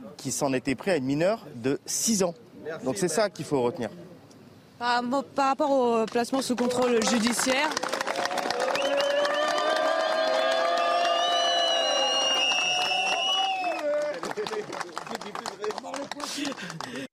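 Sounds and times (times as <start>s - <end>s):
speech: 0.2s - 4.1s, 4.8s - 8.3s
crowd applauding: 6.4s - 17.1s
raised voices cheering: 8.0s - 14.6s.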